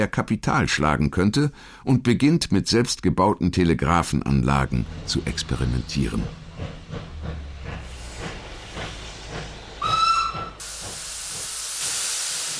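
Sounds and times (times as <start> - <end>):
speech: 0.0 - 7.4
steam train chuffing: 4.4 - 12.5
steam train whistle blast: 9.8 - 10.6.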